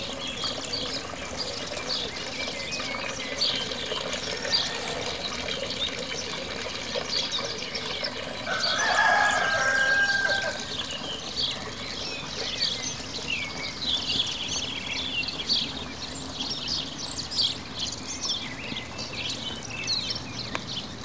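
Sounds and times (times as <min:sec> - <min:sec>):
small birds high chirping: 0:00.0 - 0:21.0
steady running water: 0:00.0 - 0:21.0
rooster crowing: 0:04.2 - 0:05.4, 0:08.4 - 0:10.8.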